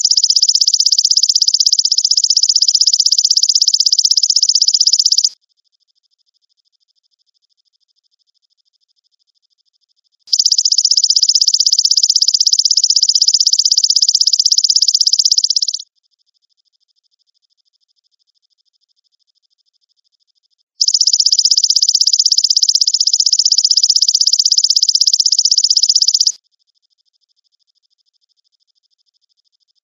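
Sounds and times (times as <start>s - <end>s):
grasshopper trilling: 0.0s - 5.4s, 10.3s - 15.8s, 20.8s - 26.4s.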